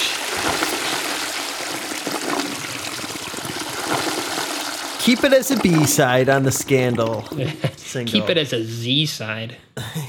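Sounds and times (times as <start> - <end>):
toilet flushing: 0.0 - 7.7
speech: 5.0 - 10.0.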